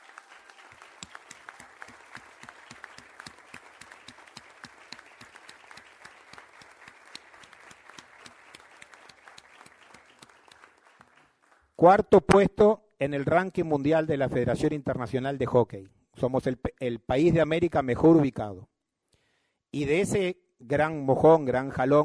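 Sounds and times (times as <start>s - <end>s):
audience applause: 0.0s - 11.7s
speech: 11.8s - 18.7s, 19.7s - 22.0s.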